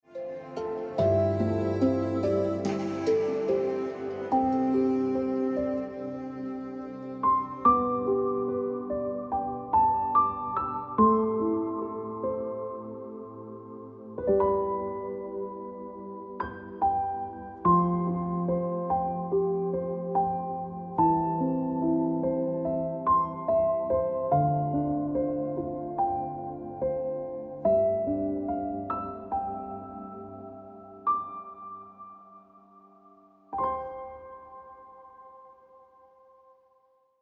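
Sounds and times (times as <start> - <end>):
piano ringtone music: 0.1 - 35.4.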